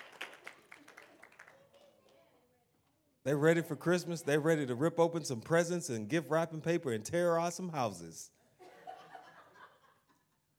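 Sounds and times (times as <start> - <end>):
audience clapping: 0.0 - 2.2
speech: 3.2 - 8.4
laughter: 3.5 - 4.9, 8.6 - 10.5.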